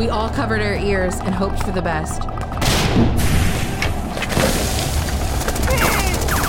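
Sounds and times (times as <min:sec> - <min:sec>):
speech: 0:00.0 - 0:03.3
grenade explosion: 0:02.6 - 0:06.4.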